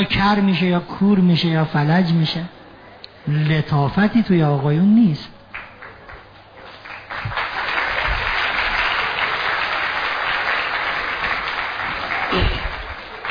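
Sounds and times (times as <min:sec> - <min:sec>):
speech: 0:00.0 - 0:02.6, 0:03.2 - 0:05.4
audience applause at a talk: 0:05.5 - 0:13.3.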